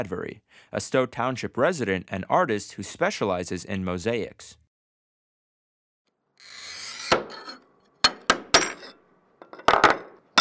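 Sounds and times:
speech: 0.0s - 4.6s
scoring and cutting glass: 6.4s - 10.3s.

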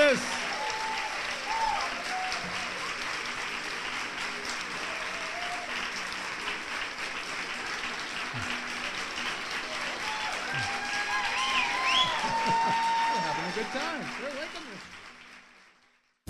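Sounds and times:
theatre audience at TheaterWorks applauding: 0.0s - 16.2s.

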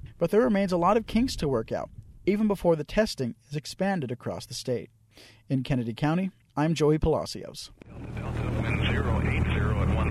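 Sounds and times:
speech: 0.2s - 8.2s
private plane propeller engine taking off at the airport in Alpine, West Texas: 7.8s - 10.1s.

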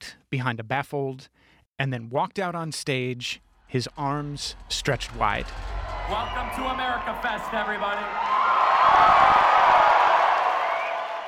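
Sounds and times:
speech: 0.3s - 9.6s
crowd cheering and whooping at America Fest: 4.6s - 11.2s.

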